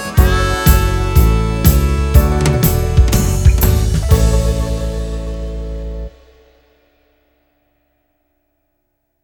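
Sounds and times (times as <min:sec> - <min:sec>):
70s pop music: 0:00.0 - 0:04.6.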